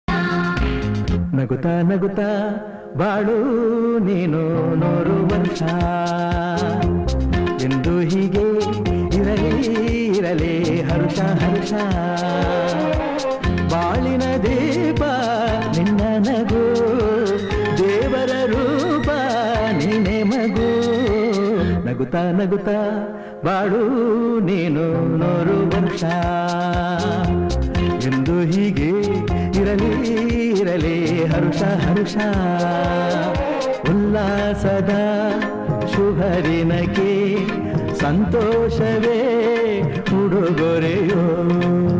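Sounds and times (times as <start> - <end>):
Kannada song: 0.1 - 41.9.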